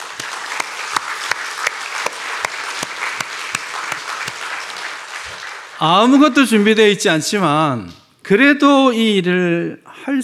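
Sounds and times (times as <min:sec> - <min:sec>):
audience applause: 0:00.0 - 0:07.0
speech: 0:05.8 - 0:10.2.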